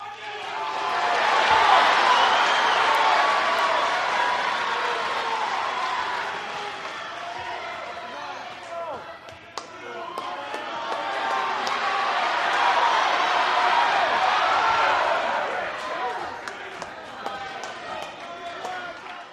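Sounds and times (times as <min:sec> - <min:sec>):
crowd walla during boxing match: 0:00.0 - 0:19.3.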